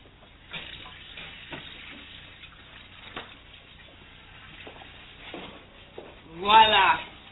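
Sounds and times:
running water from a tap while washing up: 0:00.5 - 0:05.3
speech: 0:06.5 - 0:07.1.

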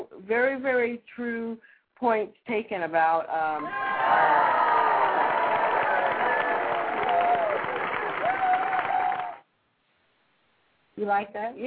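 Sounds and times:
speech: 0:00.3 - 0:04.7, 0:11.0 - 0:11.6
audience cheering and applauding: 0:03.6 - 0:09.4.

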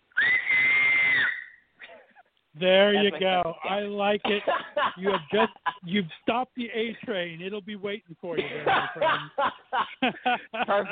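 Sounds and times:
loud two-handed finger whistle: 0:00.1 - 0:01.7
speech: 0:02.6 - 0:10.8
laughter: 0:03.8 - 0:07.3, 0:08.4 - 0:10.8.

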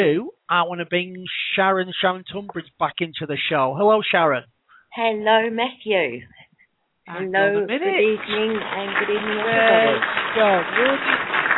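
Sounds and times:
speech: 0:00.0 - 0:06.4, 0:07.1 - 0:11.3
slightly out-of-sync audience applause: 0:08.1 - 0:11.5.

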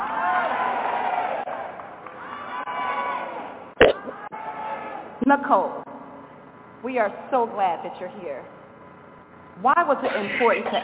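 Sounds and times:
audience screaming and cheering: 0:00.0 - 0:05.1
speech: 0:05.3 - 0:05.8, 0:06.8 - 0:08.6, 0:09.6 - 0:10.8.

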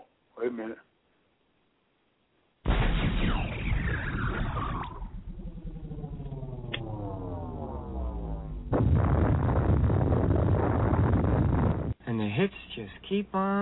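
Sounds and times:
speech: 0:00.4 - 0:00.9, 0:13.2 - 0:13.5
rocket launcher fire sound effect: 0:02.6 - 0:12.0.

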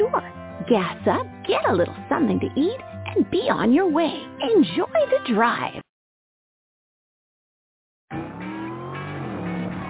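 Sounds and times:
speech: 0:00.7 - 0:05.9
car engine revving while doing burnouts and donuts: 0:08.1 - 0:09.8
car tires squealing during burnouts and donuts: 0:08.1 - 0:09.8.

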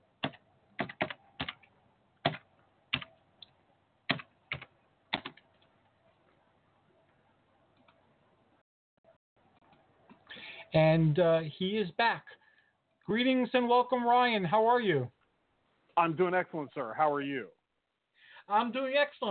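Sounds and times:
computer keyboard typing: 0:00.2 - 0:03.1, 0:04.1 - 0:05.4
speech: 0:10.7 - 0:12.4, 0:13.1 - 0:15.2, 0:16.0 - 0:17.6, 0:18.5 - 0:19.2.

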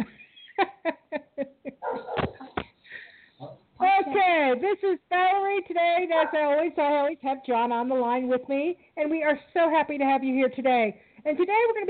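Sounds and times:
puppies barking: 0:01.8 - 0:02.4
speech: 0:04.2 - 0:11.8.

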